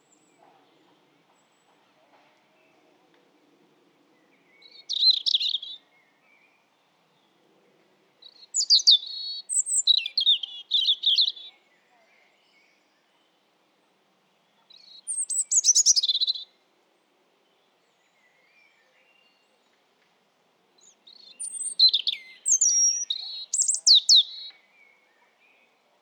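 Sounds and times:
European robin song: 4.5s - 5.8s, 8.2s - 12.7s, 14.7s - 16.6s, 20.8s - 25.8s.

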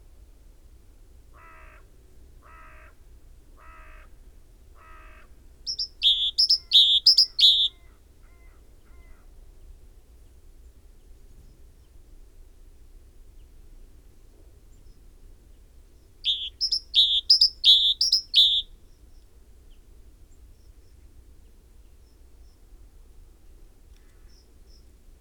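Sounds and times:
great tit singing: 5.7s - 7.7s, 16.2s - 18.7s.

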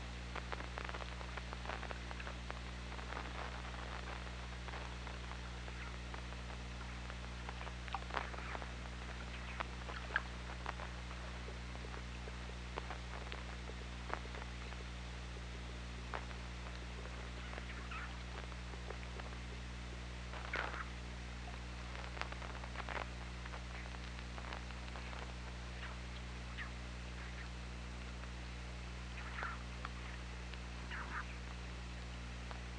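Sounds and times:
low underwater hum: 0.0s - 32.7s
killer whale clicks: 6.8s - 19.6s, 20.4s - 27.5s, 29.1s - 31.6s.

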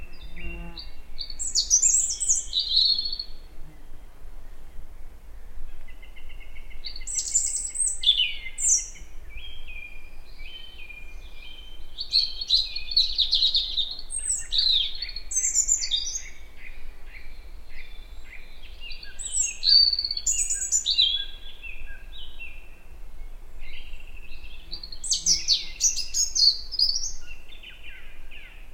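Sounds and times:
European robin song: 0.0s - 4.0s, 5.7s - 28.7s.

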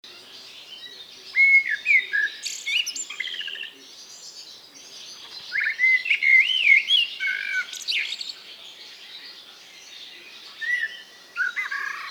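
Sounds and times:
Eurasian blackbird whistled song: 0.1s - 8.4s, 9.2s - 12.0s.

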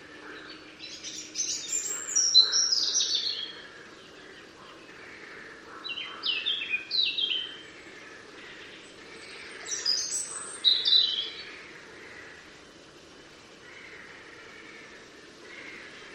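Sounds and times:
European robin singing: 0.0s - 11.6s.

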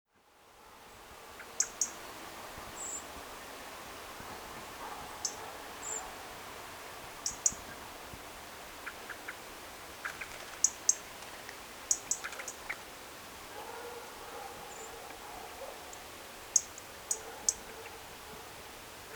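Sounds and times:
background hiss: 0.2s - 19.1s
European robin ticking calls: 1.6s - 2.0s, 7.2s - 7.6s, 10.0s - 11.1s, 11.9s - 12.8s.

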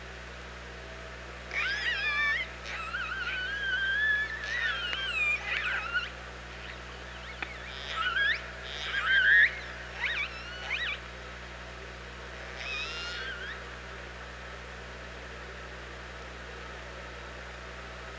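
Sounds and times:
low hum: 0.0s - 18.1s
orca calls: 1.5s - 11.0s, 12.5s - 13.6s.

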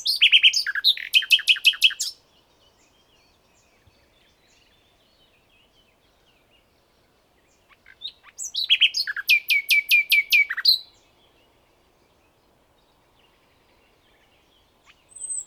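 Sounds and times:
Common nightingale Luscinia megarhynchos song: 0.0s - 15.4s.

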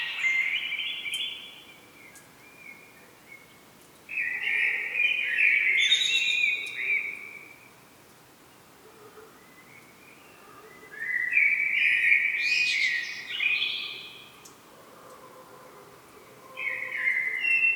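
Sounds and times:
common blackbird song: 0.0s - 7.7s, 9.4s - 14.6s, 16.5s - 17.7s.

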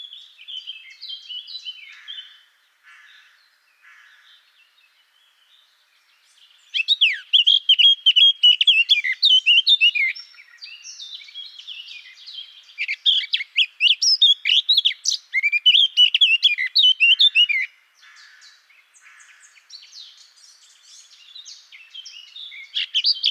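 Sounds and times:
Eurasian blackcap Sylvia atricapilla singing a fast varied warble: 6.6s - 17.7s, 19.8s - 23.3s.

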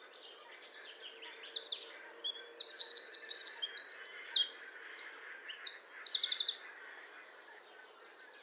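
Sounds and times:
Eurasian wren song: 0.0s - 6.6s.

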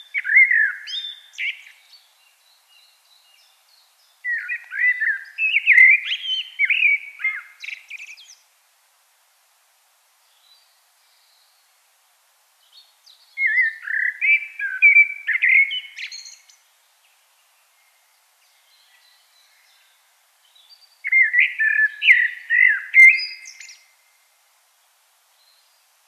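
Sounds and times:
Common blackbird singing: 0.0s - 8.4s, 12.7s - 16.6s, 18.5s - 23.9s.

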